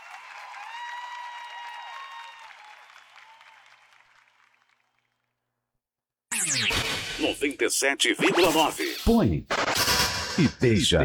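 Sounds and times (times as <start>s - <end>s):
audience cheering for a performer: 0.0s - 4.8s
audience soft clapping: 0.0s - 5.3s
speech: 7.2s - 11.0s.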